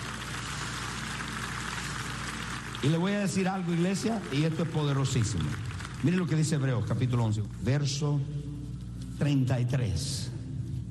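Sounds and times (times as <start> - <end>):
audience applause: 0.0 - 6.8
speech: 2.8 - 8.5, 9.2 - 10.3.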